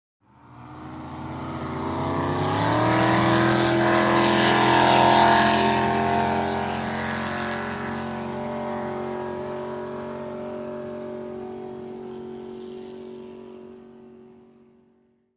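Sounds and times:
drag boat engine starting: 0.6 - 12.8.

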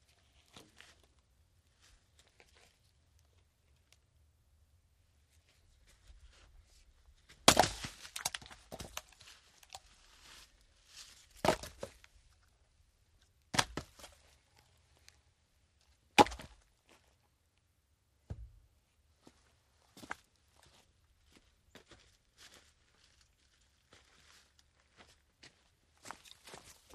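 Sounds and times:
axe splitting logs outdoors: 7.4 - 9.1, 11.4 - 11.9, 13.5 - 14.1, 16.2 - 16.6.

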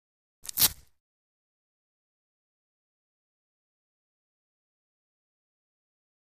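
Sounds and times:
quick biking velcro ripping: 0.4 - 1.0.

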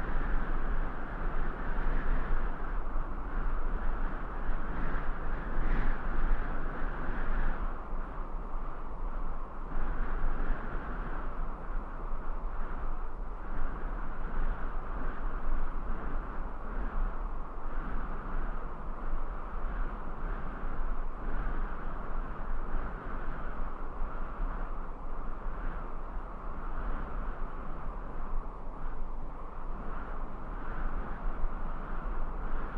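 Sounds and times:
medium sandy desert wind gusts: 0.0 - 32.7.

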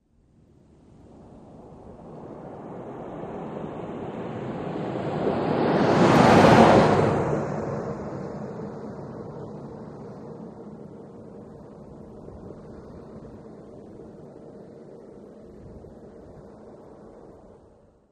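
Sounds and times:
SUV passing by right to left at 25 mph: 2.0 - 13.9.

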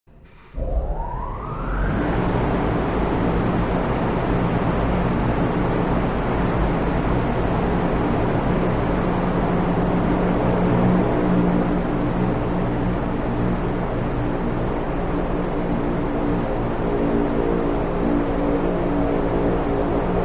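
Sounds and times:
large wind turbine powering up in a factory: 0.2 - 20.2.

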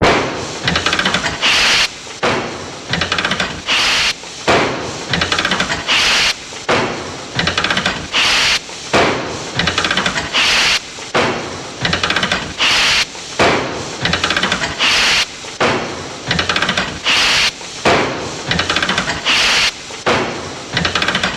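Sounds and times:
steam hammer pounding: 0.0 - 21.3
steam hammer steam release: 0.4 - 2.2, 2.8 - 6.7, 7.3 - 15.6, 16.2 - 20.0
steam hammer ratchet clicking: 0.6 - 1.9, 2.9 - 4.2, 5.1 - 6.4, 7.4 - 8.6, 9.6 - 10.8, 11.8 - 13.1, 14.0 - 15.3, 16.3 - 17.6, 18.5 - 19.8, 20.8 - 21.3.

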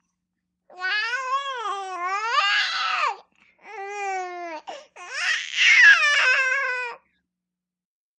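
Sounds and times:
four month old baby girl babbling: 0.7 - 7.0.

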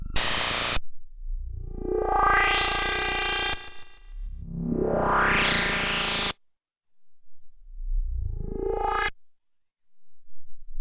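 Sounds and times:
sci-fi spaceship control interface: 0.2 - 6.4, 8.1 - 9.1.

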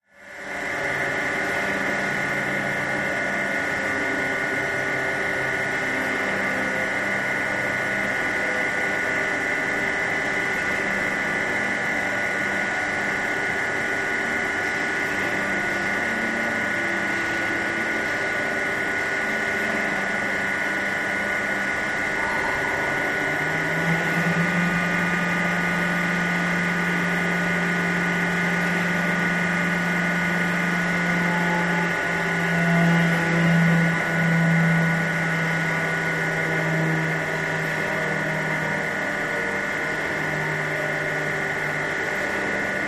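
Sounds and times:
industrial factory ambience: 0.2 - 42.8.

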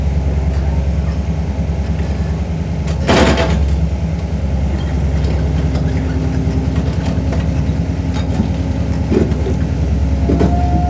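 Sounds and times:
Kubota digger earthmover at work: 0.1 - 10.8.

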